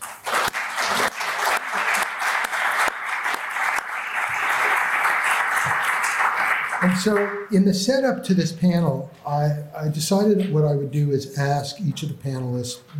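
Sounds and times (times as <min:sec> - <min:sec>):
audience clapping welcoming panelists at an LSE event: 0:00.0 - 0:07.6
speech: 0:06.8 - 0:12.9.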